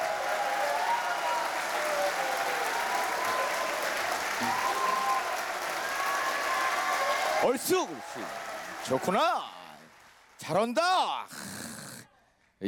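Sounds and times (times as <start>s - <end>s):
faint whistles and cheers: 0.0s - 10.1s
large audience applauding: 0.0s - 11.0s
speech: 7.4s - 9.6s, 10.4s - 11.5s.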